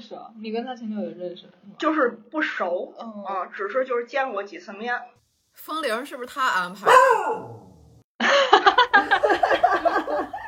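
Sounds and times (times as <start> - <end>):
speech: 0.1 - 7.6
dog barking wildly: 6.8 - 7.8
laughter: 8.2 - 10.4.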